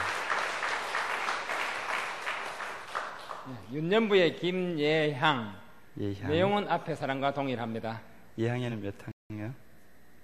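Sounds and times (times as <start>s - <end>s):
audience applause: 0.0s - 3.6s
speech: 3.7s - 9.1s.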